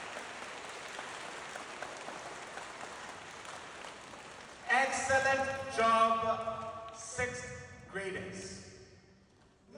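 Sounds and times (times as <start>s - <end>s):
audience clapping for volunteers: 0.0s - 7.0s
speech: 4.9s - 8.7s.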